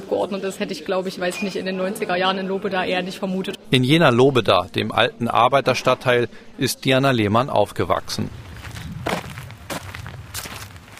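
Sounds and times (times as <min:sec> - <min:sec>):
speech: 0:00.2 - 0:08.4
footsteps of someone walking from a café over to the Landtag: 0:08.2 - 0:10.9.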